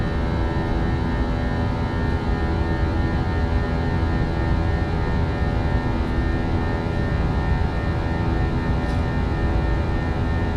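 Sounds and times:
airplane engine on a flight from Ft. Lauderdale to San Juan: 0:00.0 - 0:10.5.

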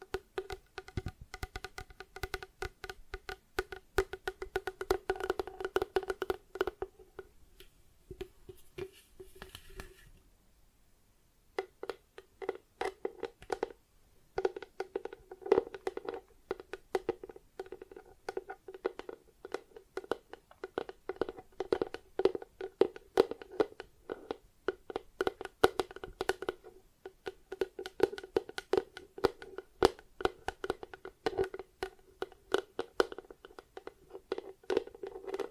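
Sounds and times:
plastic objects tapped and scratched: 0:00.0 - 0:07.3, 0:08.1 - 0:10.2, 0:11.6 - 0:35.4.

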